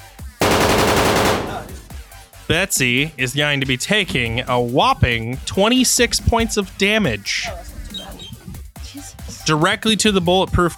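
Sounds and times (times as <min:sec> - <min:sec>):
gunfire shots at a car: 0:00.4 - 0:01.9
speech: 0:02.5 - 0:07.7, 0:09.0 - 0:10.7.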